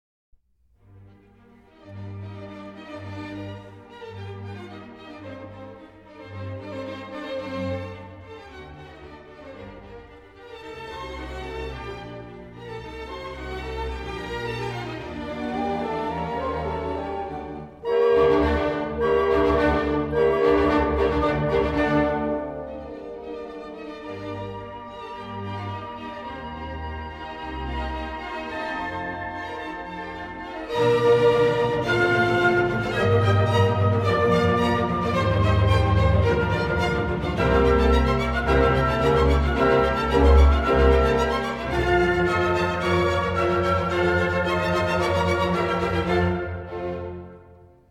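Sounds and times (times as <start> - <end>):
orchestra playing a symphony in G minor: 1.0 - 47.9.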